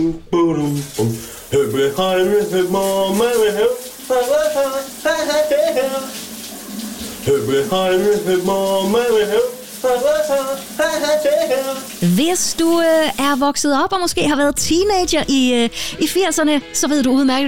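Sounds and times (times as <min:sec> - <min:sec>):
man singing in a running shower: 0:00.0 - 0:06.2, 0:07.2 - 0:11.9
speech: 0:00.0 - 0:06.2, 0:07.2 - 0:17.4
running shower water spraying: 0:00.7 - 0:13.7.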